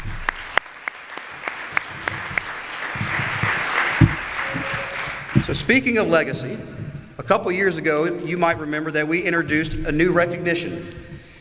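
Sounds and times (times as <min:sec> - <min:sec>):
audience applauding to honor years of service: 0:00.0 - 0:06.8
speech: 0:05.5 - 0:11.0.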